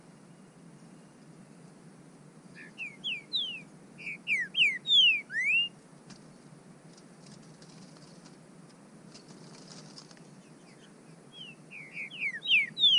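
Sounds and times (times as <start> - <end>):
bird whistling calls: 2.5 - 5.8, 10.5 - 12.9.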